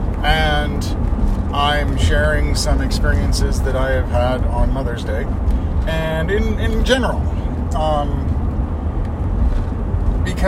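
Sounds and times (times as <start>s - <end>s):
car driving on a road: 0.0s - 10.4s
speech: 1.6s - 8.2s, 10.3s - 10.4s.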